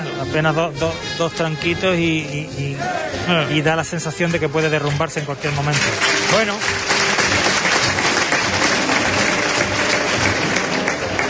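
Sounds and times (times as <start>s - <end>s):
speech: 0.2s - 7.0s
crowd applause and ovation: 5.4s - 11.2s.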